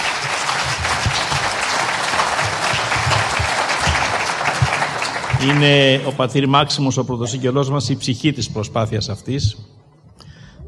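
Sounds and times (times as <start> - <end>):
audience applause: 0.0 - 6.4
speech: 5.4 - 9.7.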